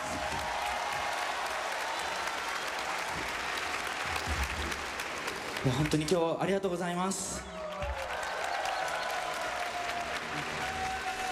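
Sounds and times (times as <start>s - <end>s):
audience applause: 0.0s - 6.5s, 7.1s - 11.3s
speech: 5.6s - 7.6s.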